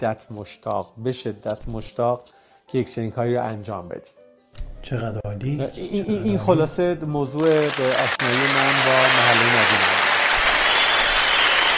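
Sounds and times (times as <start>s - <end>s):
speech: 0.0s - 4.2s, 4.8s - 10.0s
applause: 7.4s - 11.7s.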